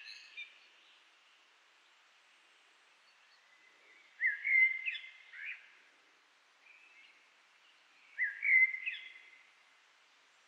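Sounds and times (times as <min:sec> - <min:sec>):
common blackbird fluty warble with high thin notes: 0:00.0 - 0:01.1, 0:02.9 - 0:05.9, 0:06.6 - 0:09.5.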